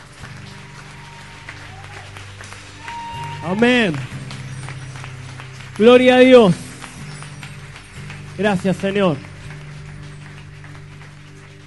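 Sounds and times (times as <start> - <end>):
congregation clapping at a youth church camp: 0.0 - 11.6
speech: 3.4 - 4.2, 5.8 - 6.6, 8.4 - 9.3.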